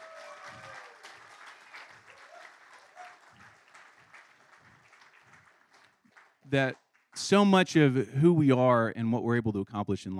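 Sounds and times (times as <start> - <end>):
audience applause: 0.0 - 7.4
speech: 6.5 - 10.1.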